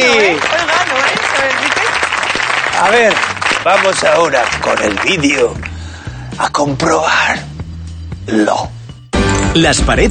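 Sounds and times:
audience applause: 0.0s - 5.7s
speech: 2.8s - 5.7s, 6.4s - 7.5s, 8.3s - 8.8s, 9.5s - 10.0s.

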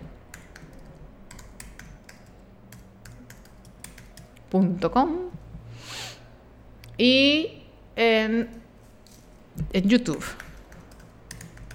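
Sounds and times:
typing on a computer keyboard: 0.3s - 4.4s, 10.1s - 11.7s
speech: 4.5s - 5.4s, 7.0s - 8.6s, 9.6s - 10.4s.

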